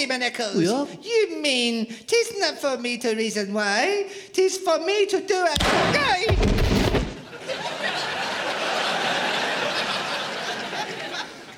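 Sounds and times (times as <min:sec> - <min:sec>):
speech: 0:00.0 - 0:06.5
gunshot from Spanish marksmen: 0:05.6 - 0:07.3
laughter: 0:07.2 - 0:11.5.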